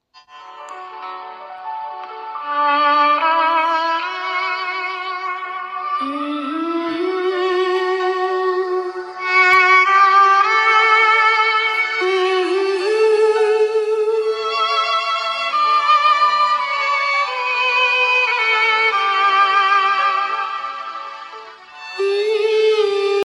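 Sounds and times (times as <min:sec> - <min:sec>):
Bollywood song melody: 0:00.1 - 0:23.2.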